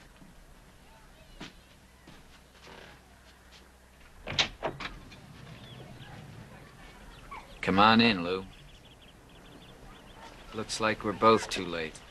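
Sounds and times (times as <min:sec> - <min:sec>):
door being opened with knocks and scrapes: 0:04.2 - 0:05.9
speech: 0:07.6 - 0:08.5, 0:10.6 - 0:12.0.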